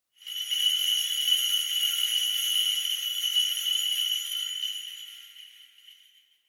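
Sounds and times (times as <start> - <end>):
Kagura suzu bells: 0.2 - 6.1.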